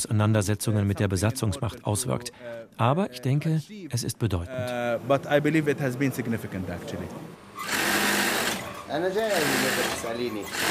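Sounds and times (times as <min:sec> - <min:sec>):
speech: 0:00.0 - 0:07.8, 0:08.9 - 0:10.6
sewing machine stitching the seams of a dress in a tailor's workshop in Sheikh Jarrah: 0:07.6 - 0:10.6.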